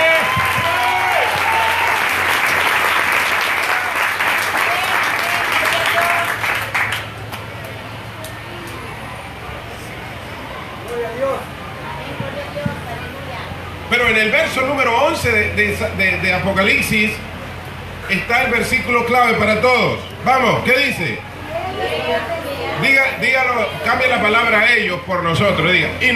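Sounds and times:
scattered cheers: 0.0s - 7.0s
loud audience applause: 0.0s - 7.8s
murmur of voices: 3.5s - 26.1s
speech: 15.2s - 17.3s, 18.1s - 21.3s, 22.1s - 26.1s.

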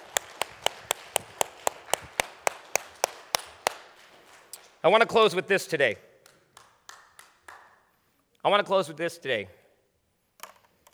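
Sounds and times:
audience clapping in unison: 0.0s - 5.4s, 6.2s - 7.9s
speech: 4.8s - 6.1s, 8.4s - 9.6s.

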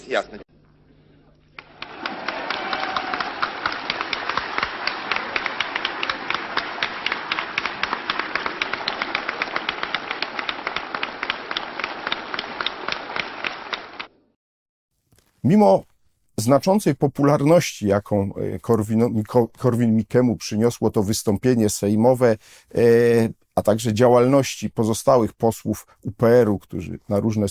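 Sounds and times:
speech: 0.1s - 0.6s, 15.5s - 27.4s
parliament assembly applauding: 1.5s - 14.3s.

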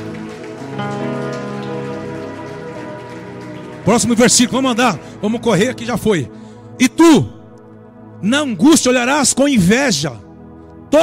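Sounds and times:
audience applauding loudly: 0.0s - 6.2s
speech: 3.9s - 7.4s, 8.2s - 10.2s.

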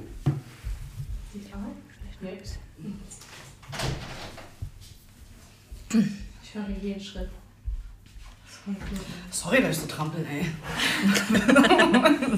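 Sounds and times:
speech: 1.6s - 3.9s, 5.9s - 7.4s, 8.6s - 12.3s
balcony door being closed: 3.3s - 4.6s
laughter: 10.6s - 12.3s.

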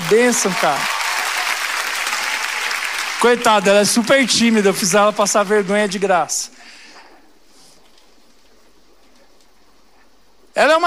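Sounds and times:
audience applause: 0.0s - 6.4s
speech: 0.1s - 1.0s, 3.2s - 6.6s, 10.6s - 10.8s.

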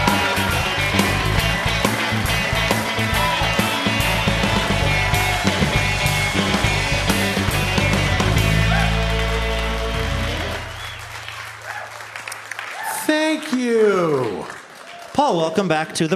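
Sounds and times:
live audience applause welcoming a guest onto the stage: 0.0s - 16.1s
speech: 15.2s - 16.1s.

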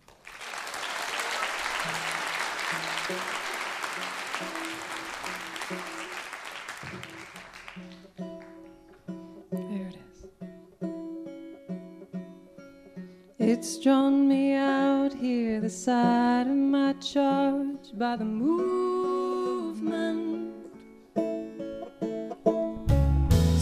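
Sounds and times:
audience applause at a live music show: 0.0s - 8.7s
soft guitar music: 7.7s - 23.5s
speech: 13.6s - 19.0s.

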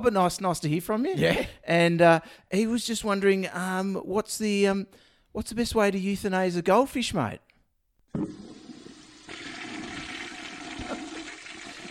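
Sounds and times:
speech: 0.0s - 7.5s, 8.1s - 8.5s
toilet flushing: 8.1s - 11.8s.

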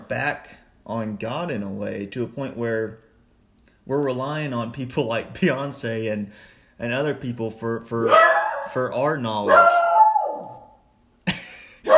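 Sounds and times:
speech: 0.1s - 3.1s, 3.9s - 9.9s
dog barking: 8.1s - 8.8s, 9.4s - 10.7s
dog whining: 9.5s - 10.8s.

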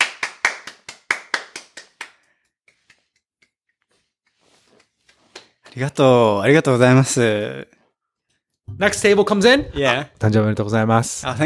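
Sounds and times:
restaurant patrons clapping: 0.0s - 3.6s, 4.6s - 5.8s
speech: 5.8s - 7.8s, 8.7s - 11.4s.

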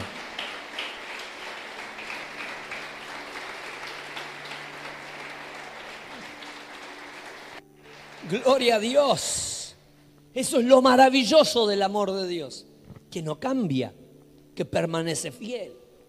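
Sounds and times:
audience applause: 0.0s - 9.3s
speech: 8.3s - 9.5s, 10.4s - 14.0s, 14.6s - 15.8s.

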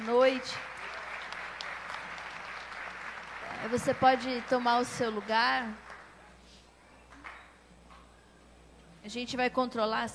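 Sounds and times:
audience applause: 0.0s - 6.2s
speech: 0.3s - 0.7s, 3.6s - 5.8s, 9.0s - 10.1s.

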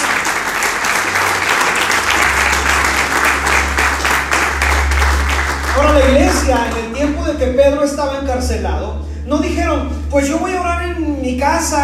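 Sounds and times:
audience applause: 0.0s - 7.3s
speech: 6.3s - 11.8s.

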